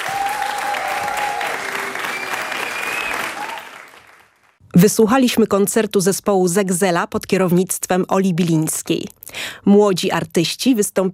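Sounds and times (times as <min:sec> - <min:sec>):
audience applause after a concert: 0:00.0 - 0:04.6
faint whistles: 0:02.1 - 0:03.4
speech: 0:04.8 - 0:11.1.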